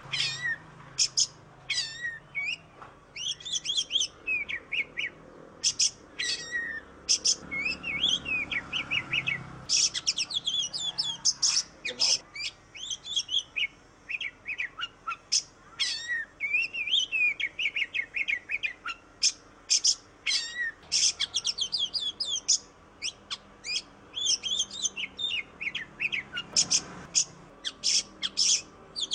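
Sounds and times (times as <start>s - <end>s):
Oriental magpie-robin singing whistles and chirps: 0.1s - 29.1s.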